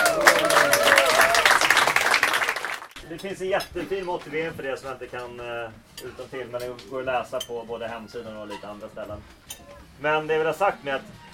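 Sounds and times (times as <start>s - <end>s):
audience applause at a sports club celebration: 0.0s - 3.0s
speech: 3.1s - 11.2s.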